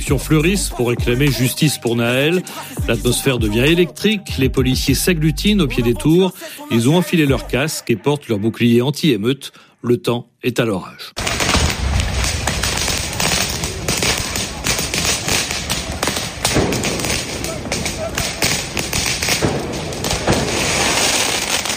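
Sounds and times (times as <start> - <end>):
speech: 0.1 - 11.3
firework mortar shots going off: 11.2 - 21.7.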